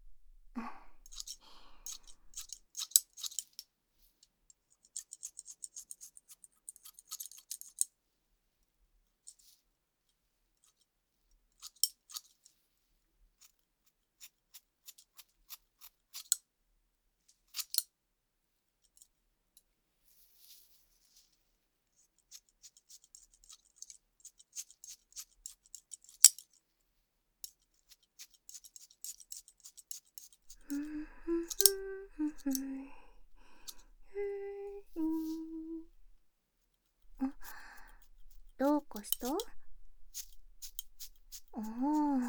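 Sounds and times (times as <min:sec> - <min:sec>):
scissors cutting hair: 0:01.0 - 0:03.4, 0:28.2 - 0:36.1, 0:37.2 - 0:42.2.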